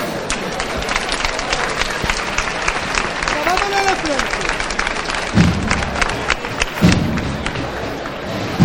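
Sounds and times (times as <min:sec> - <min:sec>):
crowd applause at a procession float lifting: 0:00.2 - 0:08.5.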